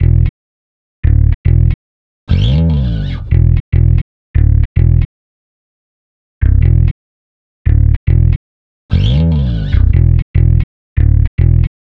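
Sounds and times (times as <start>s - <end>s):
bass slide: 0.0s - 0.3s, 1.1s - 5.1s, 6.4s - 6.9s, 7.7s - 11.7s.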